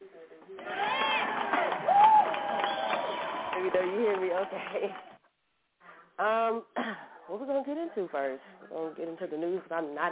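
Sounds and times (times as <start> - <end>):
applause and cheering sound effect: 0.6 - 5.2
speech: 3.6 - 5.1, 6.2 - 10.1.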